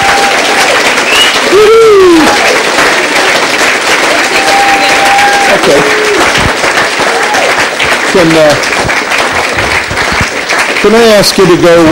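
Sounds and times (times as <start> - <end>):
church congregation applause welcoming new members: 0.0 - 11.9
sliding whistle-like hoot: 1.1 - 1.4
speech: 8.2 - 8.8, 10.8 - 11.9.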